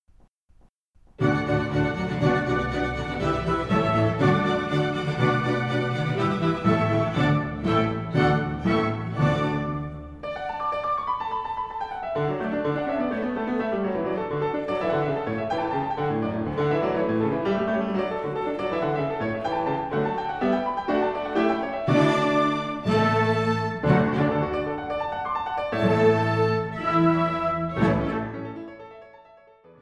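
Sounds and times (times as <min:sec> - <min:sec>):
piano: 0:00.1 - 0:29.8.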